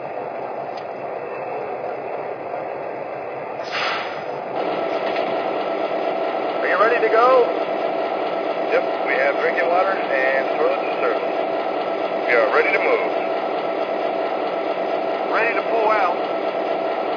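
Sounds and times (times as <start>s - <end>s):
trains: 0.0s - 17.1s.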